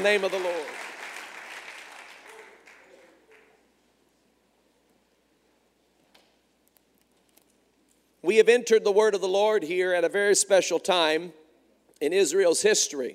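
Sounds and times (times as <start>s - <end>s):
speech: 0.0s - 0.8s, 8.3s - 11.4s, 12.0s - 13.1s
audience clapping hands: 0.0s - 3.7s.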